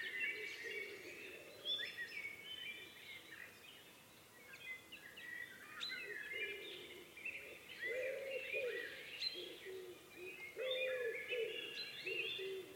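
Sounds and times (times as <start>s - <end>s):
dusk biophony: 0.0s - 12.7s.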